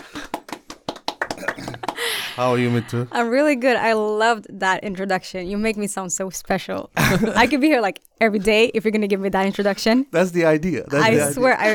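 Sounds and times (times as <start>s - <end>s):
hand clapping: 0.0s - 2.3s
speech: 1.4s - 11.7s.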